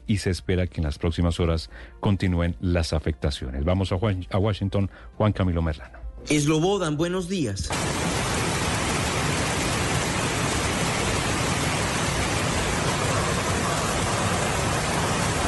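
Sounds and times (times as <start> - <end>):
speech: 0.1 - 8.0
heavy rain on a road in northern California: 7.7 - 15.4.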